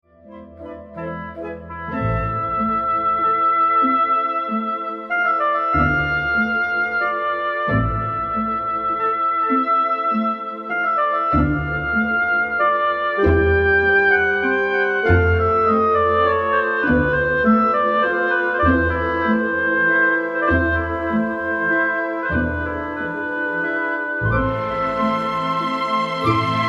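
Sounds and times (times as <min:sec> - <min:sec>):
symphony in C major: 0:00.1 - 0:26.6.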